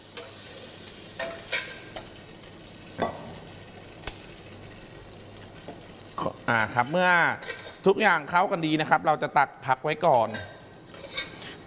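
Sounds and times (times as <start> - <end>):
shrimp stir-fried in a pan: 0.0 - 9.0, 10.2 - 11.6
speech: 6.5 - 10.5
utensil scraping against the pan: 7.3 - 7.9, 10.2 - 11.6.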